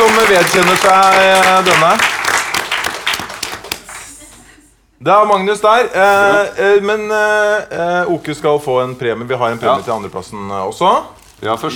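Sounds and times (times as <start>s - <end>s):
audience applause: 0.0s - 4.2s
speech: 0.3s - 2.2s, 5.0s - 11.7s.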